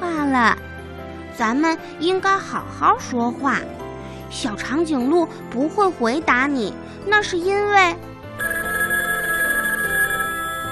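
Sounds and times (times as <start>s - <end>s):
speech: 0.3s - 0.7s, 1.4s - 8.5s
mobile phone ringing: 8.4s - 10.7s.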